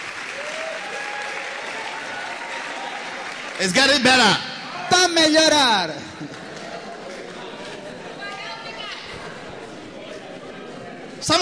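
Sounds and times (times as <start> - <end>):
audience clapping: 0.0 - 8.4
speech: 3.6 - 6.4, 11.2 - 11.4.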